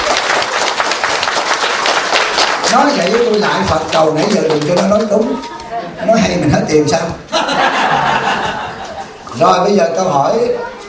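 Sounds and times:
audience applause: 0:00.0 - 0:05.3
speech: 0:02.8 - 0:07.6, 0:09.4 - 0:10.8
laughter: 0:05.7 - 0:09.3.

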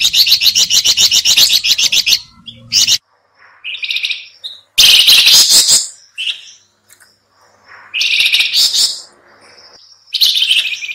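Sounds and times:
sooty-headed bulbul calling: 0:00.0 - 0:10.9.

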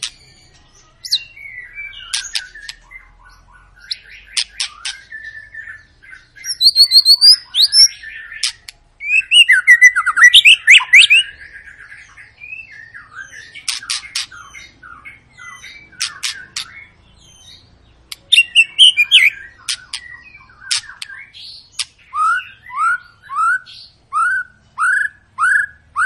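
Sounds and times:
White-rumped shama singing whistles and clicking chatter: 0:00.0 - 0:01.3, 0:01.9 - 0:03.0, 0:03.8 - 0:05.8, 0:06.4 - 0:11.2, 0:15.4 - 0:16.8, 0:18.1 - 0:26.0.

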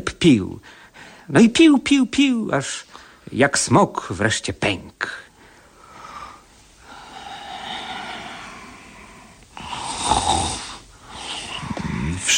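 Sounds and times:
speech: 0:00.0 - 0:05.2
sleeping person snoring: 0:06.8 - 0:12.3.

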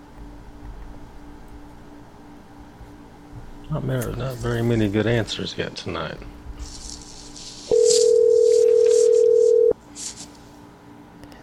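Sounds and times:
speech: 0:03.7 - 0:06.4
faint hiss: 0:06.6 - 0:10.5
telephone ringing tone of an outgoing call: 0:07.7 - 0:09.8.

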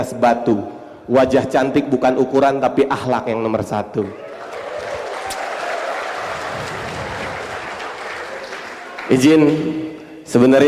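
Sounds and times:
speech: 0:00.0 - 0:04.3, 0:09.1 - 0:10.6
audience clapping: 0:04.0 - 0:10.1.

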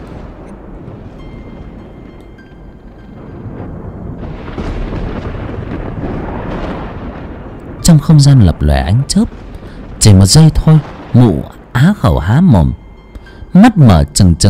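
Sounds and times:
thunderclap: 0:00.0 - 0:14.2
speech: 0:08.0 - 0:12.8, 0:13.5 - 0:14.4.

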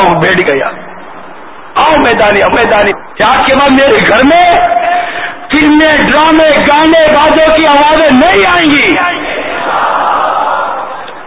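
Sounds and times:
speech: 0:00.2 - 0:00.9, 0:01.8 - 0:04.8, 0:05.5 - 0:09.9
crowd shouting a religious slogan at a weekly Sunnah gathering: 0:09.0 - 0:11.1.

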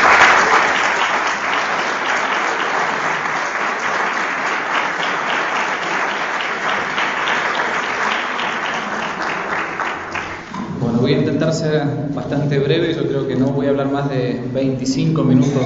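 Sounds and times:
audience applause: 0:00.0 - 0:10.9
speech: 0:11.5 - 0:15.6.

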